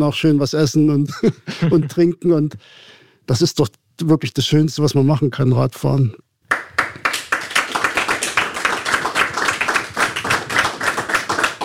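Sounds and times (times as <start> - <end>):
speech: 0.0 - 6.2
applause: 6.5 - 11.6.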